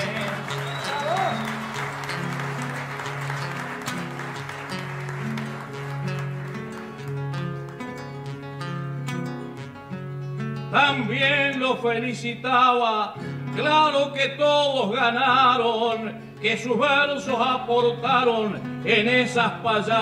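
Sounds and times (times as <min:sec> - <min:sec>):
audience applause: 0:00.0 - 0:08.2
speech: 0:10.8 - 0:20.0.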